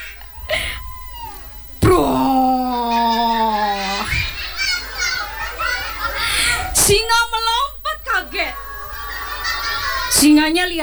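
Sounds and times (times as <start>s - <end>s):
laughter: 0.0s - 7.2s, 7.9s - 10.8s
voice imitating a fart: 1.8s - 4.3s
speech: 10.2s - 10.8s.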